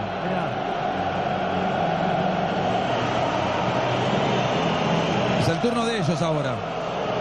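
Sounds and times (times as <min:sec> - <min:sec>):
stadium crowd roaring during an anthem: 0:00.0 - 0:07.1
speech: 0:05.6 - 0:06.8.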